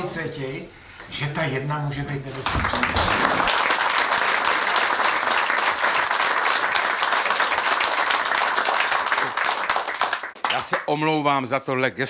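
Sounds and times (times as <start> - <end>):
speech: 0.0 - 3.7, 10.9 - 12.0
large audience applause: 2.4 - 11.0.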